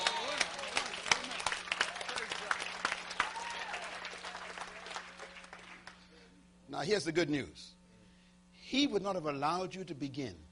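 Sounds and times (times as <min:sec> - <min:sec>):
audience clapping: 0:00.0 - 0:06.0
speech: 0:06.8 - 0:07.8, 0:08.7 - 0:10.5.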